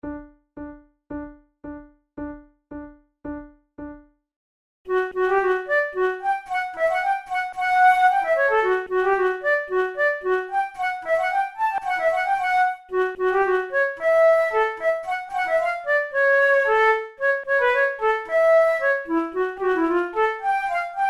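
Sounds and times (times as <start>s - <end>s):
flute duet: 4.9s - 21.0s.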